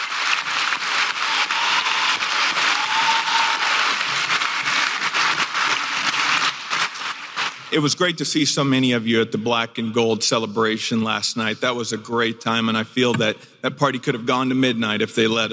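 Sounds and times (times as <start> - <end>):
round of applause: 0.0 - 7.8
speech: 7.7 - 15.5.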